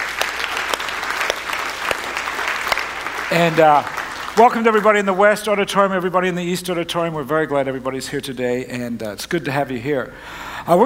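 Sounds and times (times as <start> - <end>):
church congregation in two rooms applauding its worship teams: 0.0 - 6.1
speech: 3.3 - 10.8.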